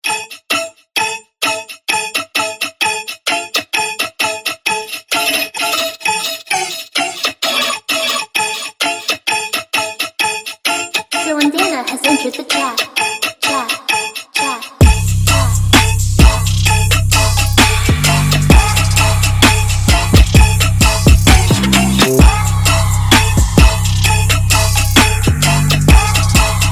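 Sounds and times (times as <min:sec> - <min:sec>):
instrumental music: 0:00.0 - 0:26.7.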